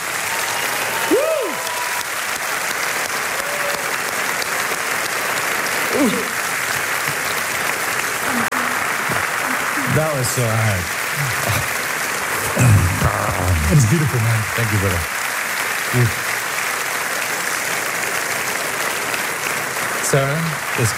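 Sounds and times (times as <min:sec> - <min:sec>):
audience applause: 0:00.0 - 0:20.9
laughter: 0:05.8 - 0:07.3, 0:08.3 - 0:15.1
speech: 0:10.2 - 0:11.6, 0:13.6 - 0:15.2, 0:15.9 - 0:16.3, 0:20.1 - 0:20.9.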